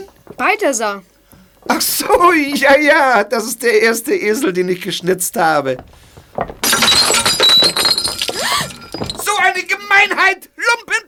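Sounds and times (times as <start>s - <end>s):
speech: 0.4s - 6.5s, 9.4s - 11.0s
window glass shattering from thrown stone: 5.8s - 9.5s.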